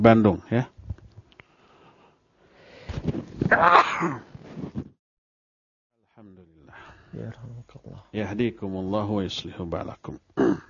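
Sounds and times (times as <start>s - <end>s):
speech: 0.0s - 0.8s, 3.5s - 4.3s, 7.1s - 10.6s
person sneezing: 3.5s - 4.3s, 10.4s - 10.6s.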